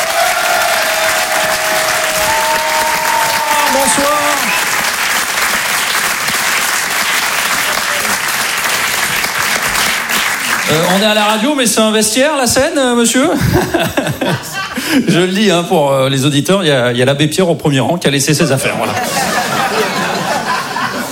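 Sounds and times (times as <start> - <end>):
audience applauding: 0.0 - 11.5
speech: 10.7 - 19.4
laughter: 13.2 - 15.4, 18.4 - 21.0.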